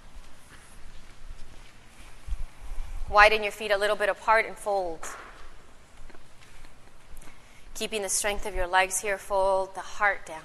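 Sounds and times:
footsteps walking forward on a yoga mat during a yoga class: 0.0s - 3.1s, 5.0s - 7.6s
speech: 3.1s - 5.2s, 7.8s - 10.4s.

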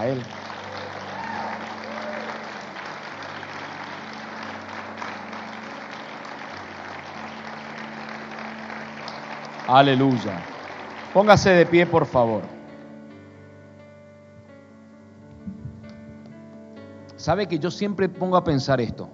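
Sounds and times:
speech: 0.0s - 0.4s, 9.7s - 10.5s, 11.1s - 12.6s, 17.2s - 19.1s
audience applause: 0.0s - 12.5s.

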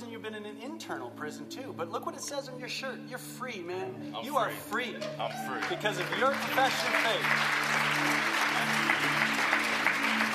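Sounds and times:
speech: 0.2s - 9.6s
church family applauding: 5.2s - 10.3s.

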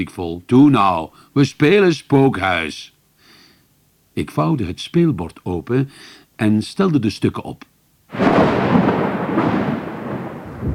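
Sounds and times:
speech: 0.0s - 3.0s, 4.2s - 8.6s
rolling thunderclap: 8.1s - 10.7s.

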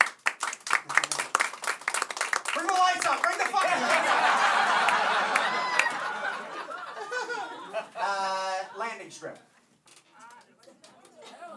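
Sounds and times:
audience applause: 0.0s - 7.3s
speech: 2.7s - 4.4s
laughter: 5.8s - 7.6s, 10.4s - 11.5s.

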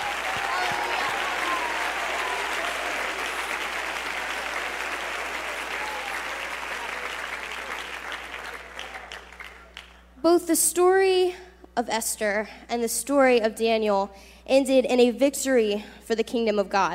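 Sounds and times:
audience hand clap of praise: 0.0s - 10.0s
speech: 10.3s - 16.9s.

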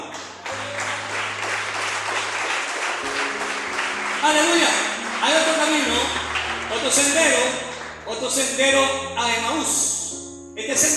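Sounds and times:
audience applause: 0.0s - 8.1s
speech: 4.2s - 4.7s, 6.9s - 9.9s, 10.7s - 10.9s.

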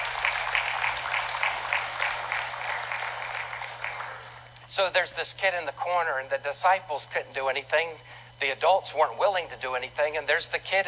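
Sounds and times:
audience applause: 0.0s - 4.4s
speech: 4.8s - 10.8s.

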